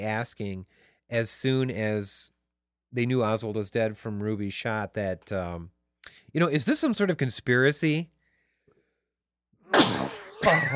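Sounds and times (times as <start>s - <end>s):
speech: 0.0s - 8.2s, 9.8s - 10.7s
person sneezing: 9.6s - 10.7s.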